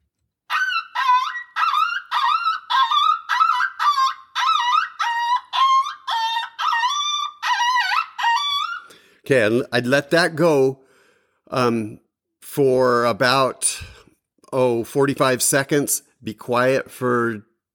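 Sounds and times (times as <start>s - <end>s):
coyote pup distress call from a game caller: 0.5s - 8.8s
speech: 9.3s - 10.8s, 11.5s - 13.8s, 14.5s - 17.5s.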